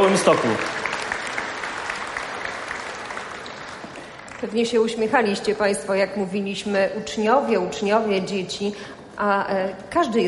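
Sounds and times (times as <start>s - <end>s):
warm audience applause for carol singers: 0.0s - 4.6s
speech: 0.1s - 0.8s, 4.4s - 10.2s.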